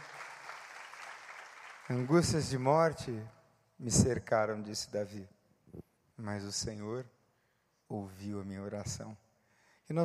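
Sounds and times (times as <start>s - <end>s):
audience applause: 0.0s - 2.5s
speech: 1.9s - 7.2s, 7.9s - 9.2s.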